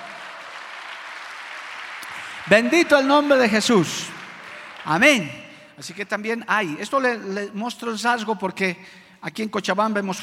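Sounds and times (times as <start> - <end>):
audience applause: 0.0 - 5.6
speech: 2.4 - 4.2, 4.8 - 10.2.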